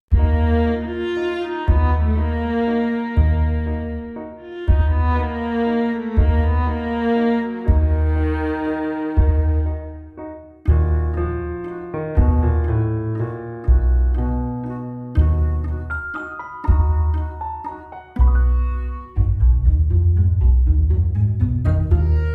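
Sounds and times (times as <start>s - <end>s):
viola: 0.1s - 22.3s.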